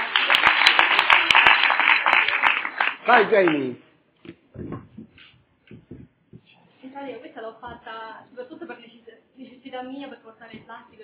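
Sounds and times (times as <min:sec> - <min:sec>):
audience applause: 0:00.0 - 0:03.8
speech: 0:03.1 - 0:04.9, 0:07.0 - 0:11.0.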